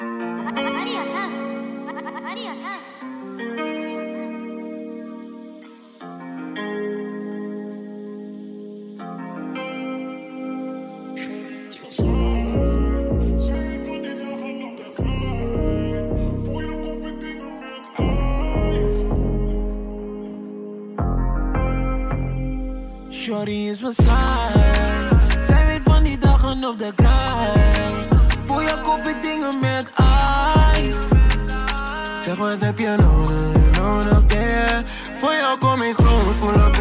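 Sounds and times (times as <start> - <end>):
rap track with auto-tuned sung vocals over synth chords: 0.0 - 4.8, 11.1 - 36.8
booming 808 bass hits and beats: 24.0 - 28.5, 30.0 - 31.6, 33.0 - 34.5, 36.0 - 36.8.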